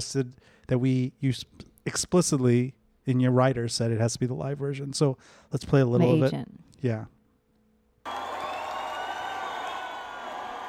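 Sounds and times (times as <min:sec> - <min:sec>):
speech: 0:00.0 - 0:07.2
live concert crowd cheering: 0:08.0 - 0:10.6.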